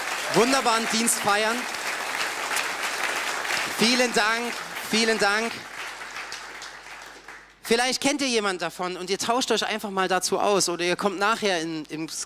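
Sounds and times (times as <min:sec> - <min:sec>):
audience applause: 0:00.0 - 0:07.6
speech: 0:00.3 - 0:01.8, 0:03.8 - 0:05.7, 0:07.7 - 0:12.2.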